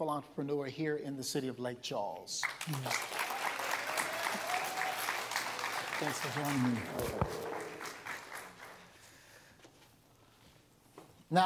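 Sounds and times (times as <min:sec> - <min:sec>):
speech: 0:00.0 - 0:03.3, 0:06.0 - 0:07.6, 0:11.3 - 0:11.4
audience applauding a guest's welcome: 0:02.4 - 0:09.1.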